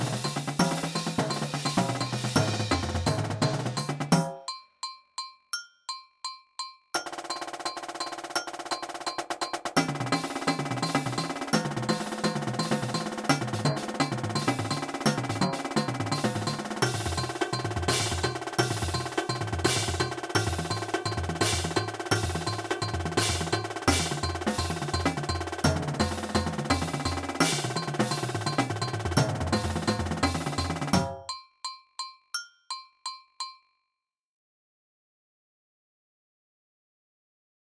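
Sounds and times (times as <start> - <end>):
drumline playing: 0.0 - 4.2, 7.0 - 31.0.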